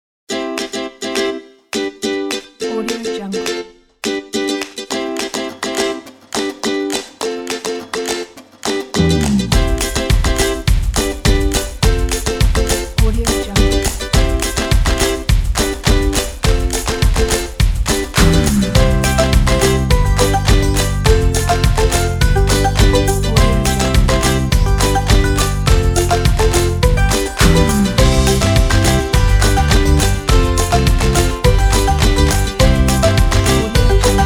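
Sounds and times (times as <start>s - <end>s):
upbeat happy music: 0.3s - 34.2s.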